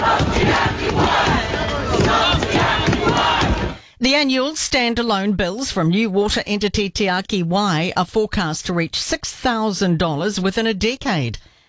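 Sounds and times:
protest crowd chanting outside Parliament: 0:00.0 - 0:03.8
speech: 0:04.0 - 0:11.5.

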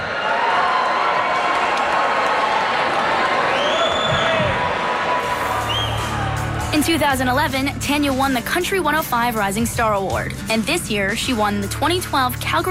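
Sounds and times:
crowd at the Calgary Stampede applauding: 0:00.0 - 0:06.7
crowd whistles: 0:03.5 - 0:04.6, 0:05.6 - 0:06.2
speech: 0:06.8 - 0:12.6.

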